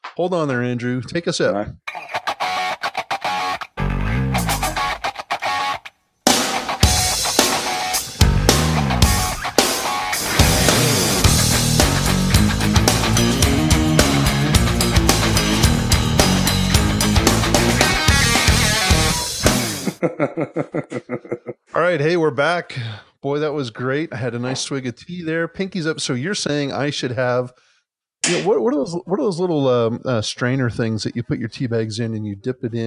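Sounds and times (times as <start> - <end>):
speech: 0.2 - 1.9, 20.0 - 20.9, 21.8 - 27.6, 28.2 - 32.8
rock music with crunchy guitars: 1.9 - 20.0
laughter: 19.6 - 21.7.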